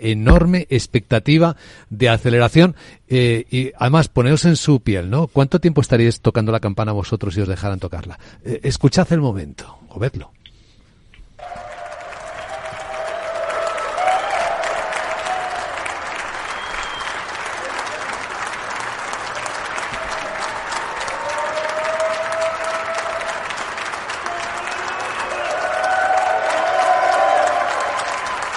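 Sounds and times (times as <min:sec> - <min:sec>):
speech: 0:00.0 - 0:10.4
scattered cheers and voices: 0:11.4 - 0:16.9, 0:19.9 - 0:28.5
large crowd clapping: 0:11.4 - 0:28.5.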